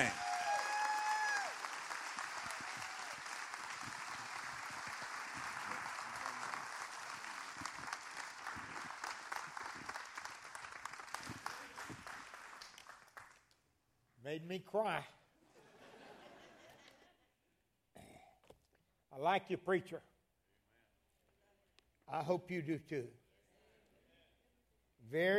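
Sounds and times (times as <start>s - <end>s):
Temple Baptist church congregation applauding a visiting preacher: 0.0s - 13.6s
speech: 14.3s - 15.2s, 19.2s - 20.1s, 22.1s - 23.2s, 25.1s - 25.3s
laughter: 15.5s - 17.3s.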